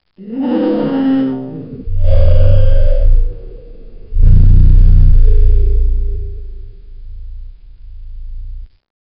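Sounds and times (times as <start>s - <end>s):
mammal distorted low booming: 1.7s - 8.7s.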